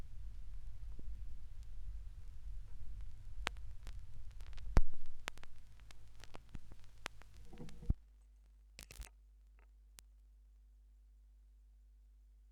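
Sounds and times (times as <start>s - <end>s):
vinyl record crackle: 0.0s - 9.1s.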